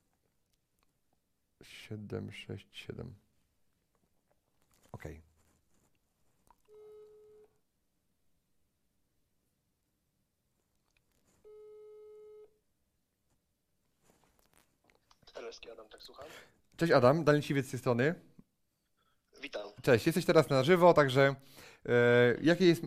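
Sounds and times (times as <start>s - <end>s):
low noise: 0.0s - 22.8s
speech: 1.6s - 3.3s, 5.0s - 5.3s, 15.5s - 18.3s, 19.4s - 22.8s
electronic telephone ringing tone during outgoing call: 6.7s - 7.5s, 11.4s - 12.6s.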